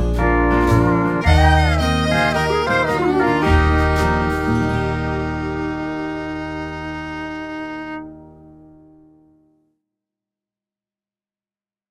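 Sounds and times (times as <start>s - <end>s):
tenor horn playing slow blues warmup in E-flat: 0.2s - 8.9s.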